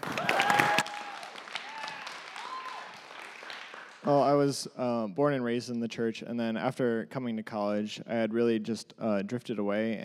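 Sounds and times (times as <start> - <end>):
audience clapping: 0.0 - 4.2
speech: 4.1 - 10.0.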